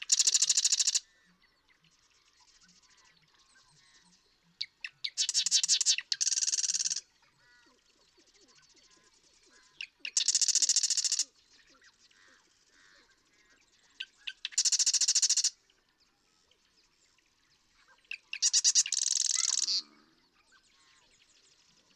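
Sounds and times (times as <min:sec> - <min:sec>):
Marsh Wren rattling trill song: 0:00.1 - 0:01.0, 0:05.2 - 0:07.0, 0:10.2 - 0:11.2, 0:14.5 - 0:15.4, 0:18.4 - 0:19.8.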